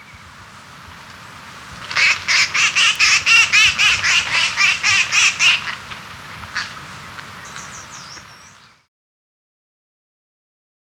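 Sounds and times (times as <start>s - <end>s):
Red-crested cotinga in Ecuador: 1.1s - 8.6s.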